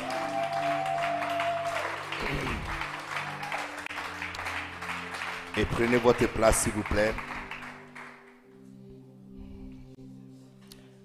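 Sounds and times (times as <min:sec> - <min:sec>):
church congregation applause: 0:00.0 - 0:08.5
speech: 0:02.2 - 0:02.8, 0:05.6 - 0:07.3.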